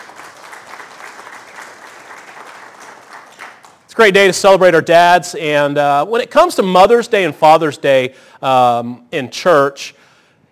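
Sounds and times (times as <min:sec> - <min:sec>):
audience applauding: 0:00.0 - 0:03.9
speech: 0:04.0 - 0:10.0.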